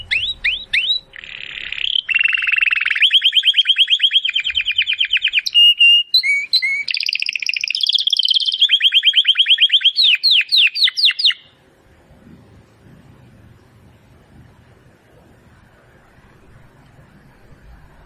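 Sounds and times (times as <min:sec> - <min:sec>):
domestic canary singing: 0:00.0 - 0:11.6.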